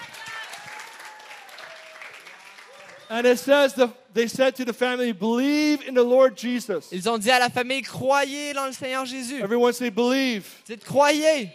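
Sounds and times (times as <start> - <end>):
audience applause: 0.0 - 3.4
faint voice or cheer: 0.0 - 3.5
speech: 3.1 - 11.5.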